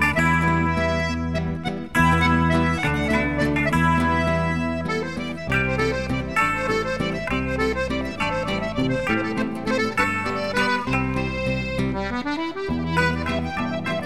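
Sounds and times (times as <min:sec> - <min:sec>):
accordions playing a waltz: 0:00.0 - 0:14.0.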